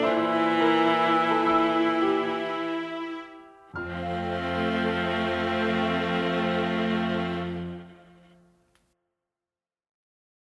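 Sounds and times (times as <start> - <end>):
violin: 0.0 - 8.6
piano: 0.0 - 8.7.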